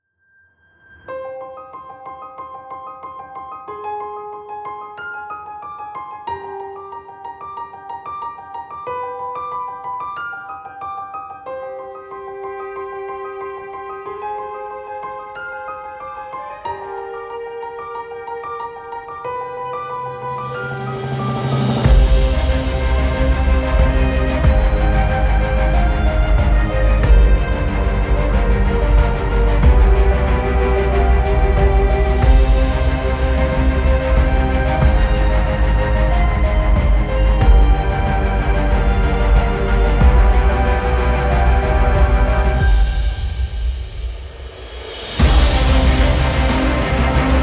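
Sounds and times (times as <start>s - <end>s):
epic emotional cinematic music: 19.4s - 47.4s.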